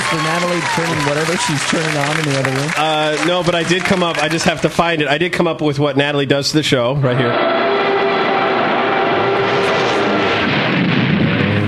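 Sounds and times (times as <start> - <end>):
speech: 0.1 - 7.7
tires screeching to a halt: 7.0 - 11.6
plane crashing: 7.2 - 11.6.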